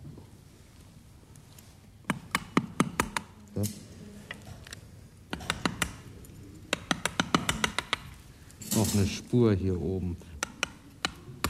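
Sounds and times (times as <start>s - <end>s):
low hum: 0.0s - 11.4s
surgical hammer tapping during hip surgery: 2.0s - 3.3s, 5.3s - 6.1s, 6.7s - 8.2s, 10.4s - 11.4s
speech: 3.6s - 3.9s, 8.8s - 10.3s.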